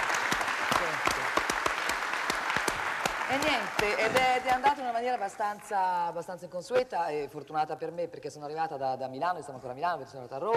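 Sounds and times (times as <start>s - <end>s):
audience applause: 0.0s - 5.4s
speech: 3.3s - 10.5s.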